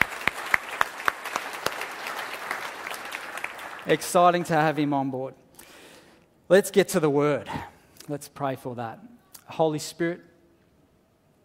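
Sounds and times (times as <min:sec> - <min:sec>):
church congregation clapping: 0:00.0 - 0:04.8
speech: 0:03.9 - 0:05.4, 0:06.5 - 0:10.3.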